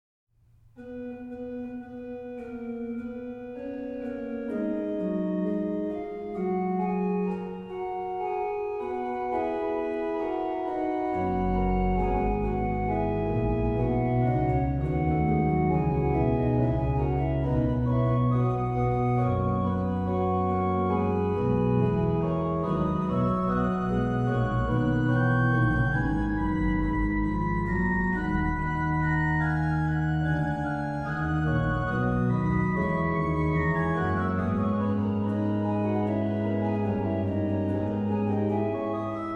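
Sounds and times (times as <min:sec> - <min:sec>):
organ chorale prelude: 0:00.8 - 0:39.3.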